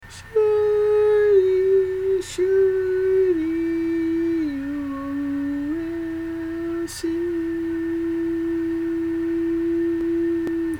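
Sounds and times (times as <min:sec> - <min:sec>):
barbershop tags singing: 0:00.1 - 0:10.7.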